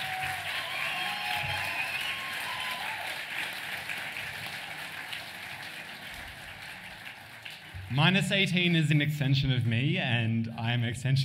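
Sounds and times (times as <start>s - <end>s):
audience applause: 0.0s - 8.8s
speech: 7.9s - 11.2s.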